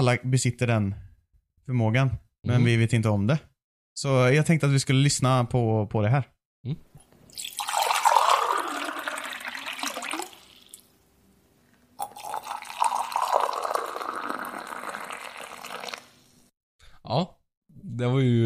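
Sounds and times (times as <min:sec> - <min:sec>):
speech: 0:00.0 - 0:07.5, 0:18.0 - 0:18.4
water poured for pour-over coffee: 0:07.3 - 0:10.8, 0:12.0 - 0:16.2.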